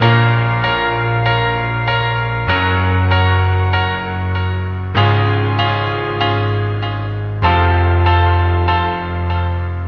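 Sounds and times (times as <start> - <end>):
sad piano loop: 0.0 - 9.8.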